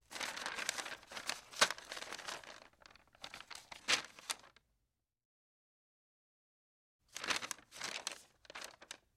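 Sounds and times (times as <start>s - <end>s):
parchment paper handled by hand: 0.0s - 4.6s, 7.1s - 9.1s.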